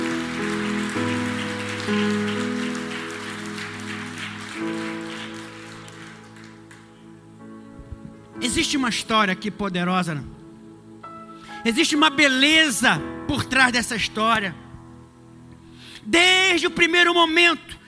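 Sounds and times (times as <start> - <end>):
audience applauding: 0.0 - 7.3
sustained keyboard chords: 0.0 - 15.6
speech: 8.5 - 10.4, 11.6 - 14.6, 16.0 - 17.8.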